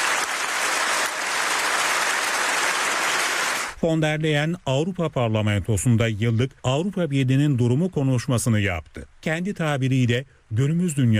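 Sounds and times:
standing ovation in the European Parliament plenary hall: 0.0s - 3.8s
speech: 3.8s - 11.1s.

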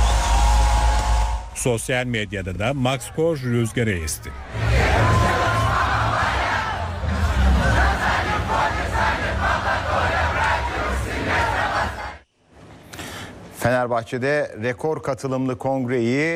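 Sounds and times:
enthusiastic stadium concert crowd cheering: 0.0s - 12.2s
speech: 1.6s - 5.2s, 13.6s - 16.3s.

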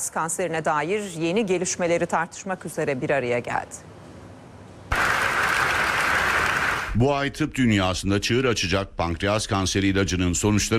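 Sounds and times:
speech: 0.0s - 3.9s, 7.0s - 10.7s
applause from scientists at a medical meeting in Istanbul: 4.9s - 7.0s.

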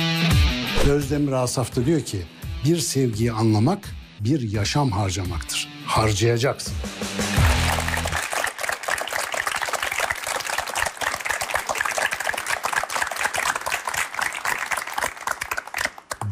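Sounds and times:
speech: 0.9s - 7.0s
applause: 7.2s - 16.2s.

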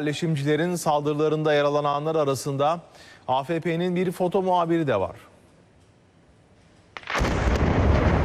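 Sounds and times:
speech: 0.0s - 5.3s
house in Bitlu village blown up with explosives by Israeli soldiers: 7.0s - 8.2s.

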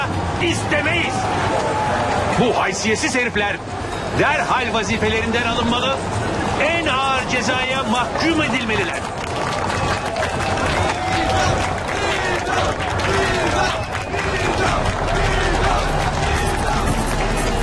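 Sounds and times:
crowd of rebels cheering: 0.0s - 3.3s, 6.2s - 17.6s
speech: 0.4s - 1.4s, 2.4s - 9.8s
crowd applause: 7.5s - 17.6s.

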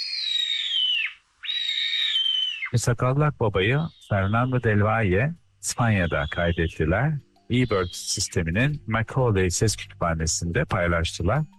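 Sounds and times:
sparrowhawk giving high thin whining calls: 0.0s - 2.8s, 3.6s - 8.9s
speech: 2.7s - 11.5s.

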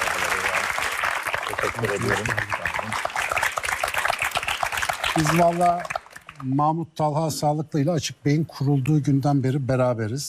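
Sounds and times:
audience applause as a guest is welcomed onto a stage: 0.0s - 6.5s
speech: 1.5s - 3.1s, 5.2s - 10.2s.

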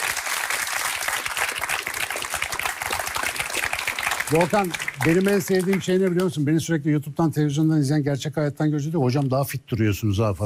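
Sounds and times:
audience applause: 0.0s - 6.4s
speech: 4.3s - 10.4s.

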